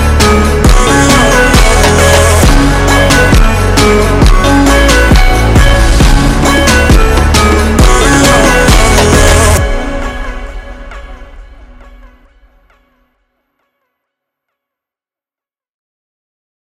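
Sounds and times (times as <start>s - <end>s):
super slowed funk music: 0.0s - 13.0s.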